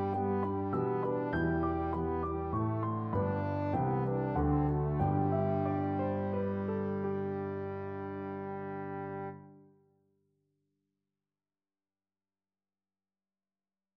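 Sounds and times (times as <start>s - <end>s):
trombone trio playing: 0.0s - 9.4s.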